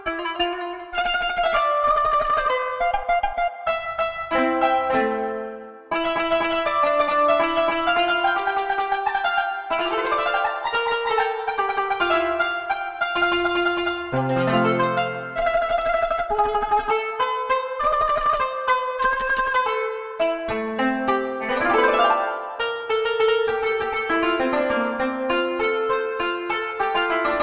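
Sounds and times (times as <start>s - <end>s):
qanun playing: 0.0s - 27.4s.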